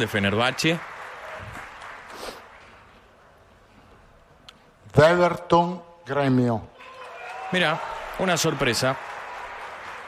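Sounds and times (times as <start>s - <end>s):
speech: 0.0s - 0.9s, 4.9s - 6.7s, 7.5s - 9.1s
soft applause: 0.0s - 3.3s, 6.7s - 10.0s.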